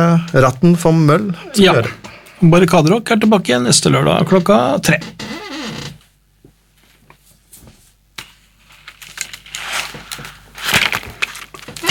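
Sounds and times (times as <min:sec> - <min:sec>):
speech: 0:00.0 - 0:05.4
chair creaking: 0:04.1 - 0:06.2, 0:08.8 - 0:11.8.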